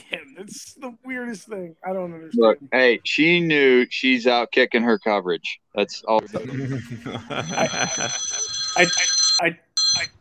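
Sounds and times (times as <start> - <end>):
speech: 0.4 - 10.2
laughter: 6.2 - 9.2
phone ringing with incoming call: 7.3 - 10.2.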